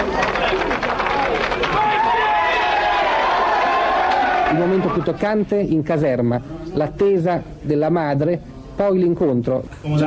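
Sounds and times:
crowd applauding: 0.0s - 5.2s
speech: 4.6s - 10.0s.

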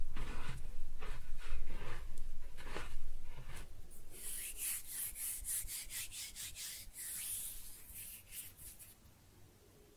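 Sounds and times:
kinetic sand being cut and scooped: 0.1s - 7.7s.

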